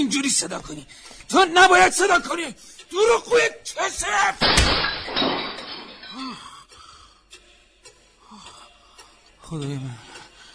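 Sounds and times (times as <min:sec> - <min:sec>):
speech: 0:00.0 - 0:05.4, 0:09.5 - 0:10.1
wardrobe mirror shattering when struck with a clock: 0:04.4 - 0:06.4
glass clinks and tinkles: 0:04.8 - 0:06.5.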